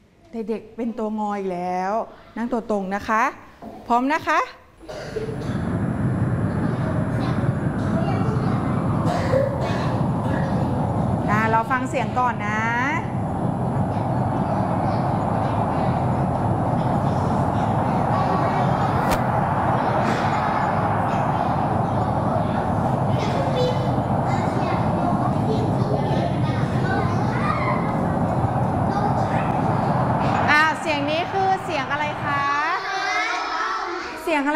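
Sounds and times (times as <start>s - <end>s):
speech: 0.3s - 5.3s, 11.5s - 13.0s
storm wind blowing: 5.2s - 34.4s.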